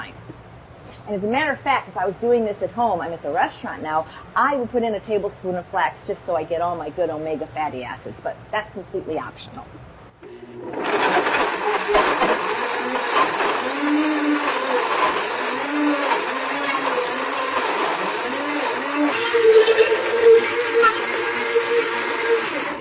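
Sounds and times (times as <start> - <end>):
speech: 1.1 - 9.9
blender blending a fruit smoothie: 10.2 - 22.7.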